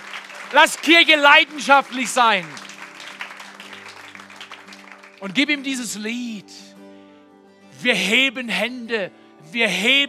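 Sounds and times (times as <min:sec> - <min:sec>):
audience applause: 0:00.0 - 0:05.8
speech: 0:00.5 - 0:02.6, 0:05.2 - 0:06.6, 0:07.8 - 0:10.0.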